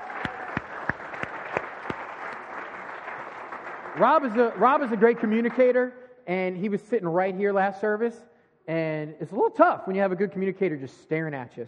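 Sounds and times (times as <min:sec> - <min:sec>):
audience clapping: 0:00.0 - 0:05.8
speech: 0:04.0 - 0:11.6.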